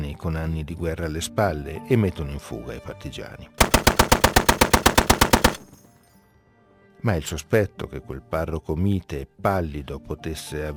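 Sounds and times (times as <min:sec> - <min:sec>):
speech: 0:00.2 - 0:04.2, 0:07.0 - 0:10.7
machine gun bursts: 0:03.6 - 0:05.8
rifle shots from a nearby wood: 0:03.6 - 0:05.8.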